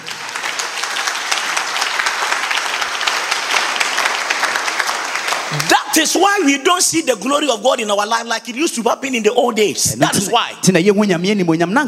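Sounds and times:
audience clapping: 0.0 - 6.8
speech: 5.9 - 11.8.

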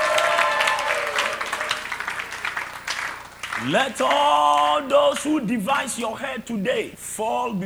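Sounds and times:
applause: 0.1 - 4.8
speech: 3.7 - 7.6.

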